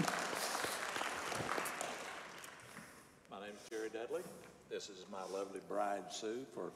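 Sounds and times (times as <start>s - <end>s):
audience applause: 0.0s - 2.7s
speech: 3.5s - 6.7s.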